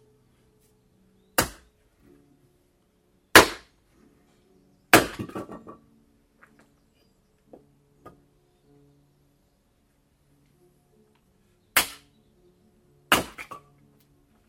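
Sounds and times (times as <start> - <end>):
wood chopping: 1.4 - 1.7, 3.3 - 3.7, 4.9 - 5.8, 11.7 - 12.1, 13.1 - 13.7.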